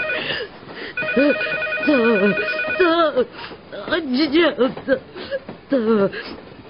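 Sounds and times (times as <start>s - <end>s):
telephone bell ringing: 0.0s - 3.0s
person talking: 1.2s - 5.0s.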